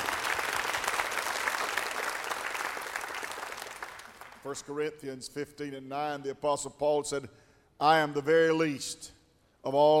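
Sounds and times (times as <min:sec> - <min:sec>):
audience clapping hands: 0:00.0 - 0:04.6
speech: 0:04.4 - 0:09.9.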